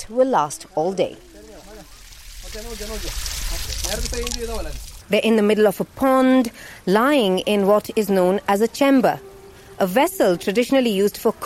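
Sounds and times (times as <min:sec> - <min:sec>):
speech: 0:00.0 - 0:01.3, 0:02.5 - 0:11.4
artificial rain pouring from a water pipe onto a pond: 0:01.2 - 0:05.1.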